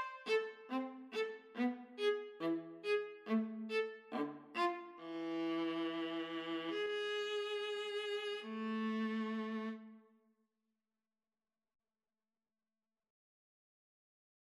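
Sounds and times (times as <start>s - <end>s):
gavotte played as violin and viola duet: 0.0s - 10.0s.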